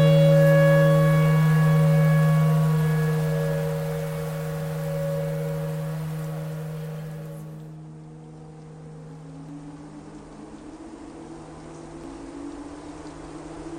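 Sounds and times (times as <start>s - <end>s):
tornado siren clarinet notes in E pentatonic: 0.0s - 8.4s.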